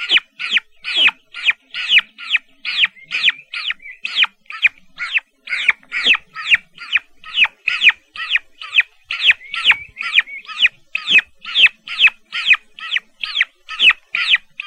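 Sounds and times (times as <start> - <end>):
turkey chicks calling: 0.0 - 14.6.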